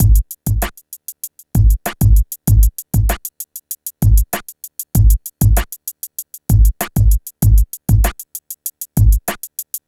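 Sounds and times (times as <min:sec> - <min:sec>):
hip hop beat: 0:00.0 - 0:09.8.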